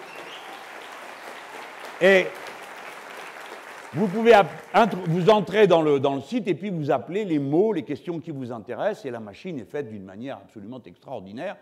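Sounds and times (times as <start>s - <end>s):
audience applause: 0.0s - 5.6s
speech: 2.0s - 2.4s, 3.9s - 11.5s.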